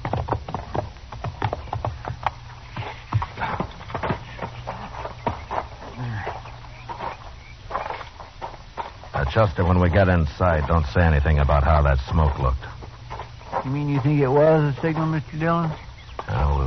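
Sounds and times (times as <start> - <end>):
horses' hooves clip-clopping: 0.0 - 16.6
low steady hum: 0.0 - 16.6
faint murmuring voices: 2.8 - 8.0, 9.1 - 16.6
speech: 9.4 - 12.8, 13.6 - 16.5.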